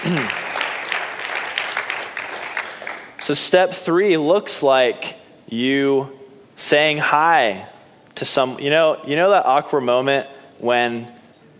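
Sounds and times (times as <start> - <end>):
speech: 0.0 - 0.4, 3.3 - 11.2
crowd clapping: 0.0 - 3.3.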